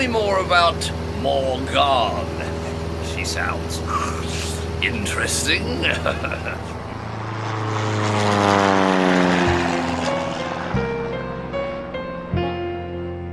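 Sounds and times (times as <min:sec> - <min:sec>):
speech: 0:00.0 - 0:02.5, 0:03.1 - 0:06.8
propeller airplane engine droning while coming in to land: 0:00.0 - 0:13.3
laughter: 0:02.3 - 0:03.2, 0:03.8 - 0:06.9.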